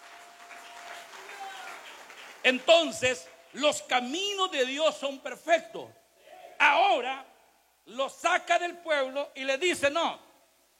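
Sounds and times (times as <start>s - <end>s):
audience applauding: 0.0s - 3.6s
speech: 2.4s - 6.0s, 6.6s - 7.3s, 7.9s - 10.2s.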